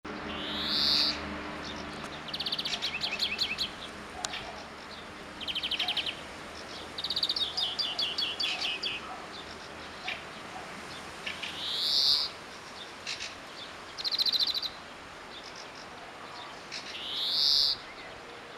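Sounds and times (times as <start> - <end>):
European greenfinch Chloris chloris calls with rapid high twittering trills: 0.1 - 18.2.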